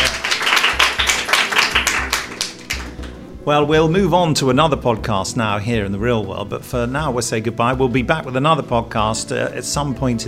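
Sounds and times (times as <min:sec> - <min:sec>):
small audience clapping at a Big Finish Day fan event: 0:00.0 - 0:03.2
speech: 0:03.4 - 0:10.2.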